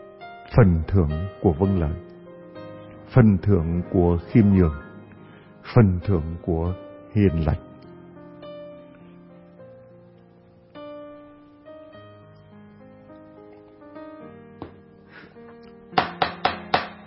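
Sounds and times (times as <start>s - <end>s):
speech: 0.5s - 2.1s, 3.1s - 4.8s, 5.6s - 7.7s
knocking on a door: 16.0s - 17.0s.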